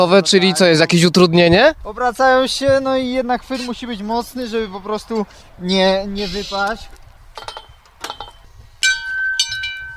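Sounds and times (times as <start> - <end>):
speech: 0.0 - 7.6
metallic clinks and rattles: 7.3 - 9.9
bell rung at end of obstacle: 7.5 - 9.9.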